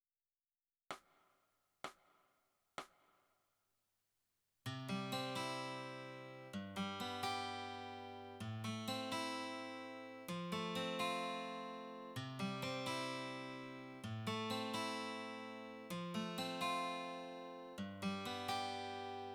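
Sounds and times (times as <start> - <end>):
guitar: 4.7 - 19.3.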